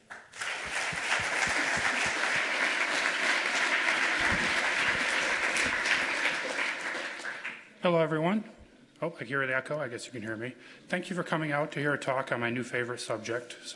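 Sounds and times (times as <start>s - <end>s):
audience applause welcoming a speaker: 0.0s - 7.7s
speech: 7.8s - 13.7s.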